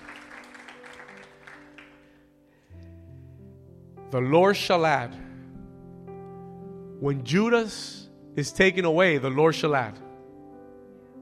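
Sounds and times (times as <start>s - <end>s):
audience clapping: 0.0s - 2.2s
speech: 4.1s - 5.2s, 7.0s - 10.0s.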